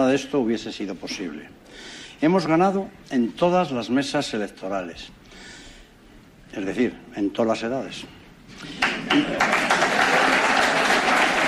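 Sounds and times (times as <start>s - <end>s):
speech: 0.0s - 5.6s, 6.5s - 9.8s
applause for an election winner: 8.6s - 11.4s.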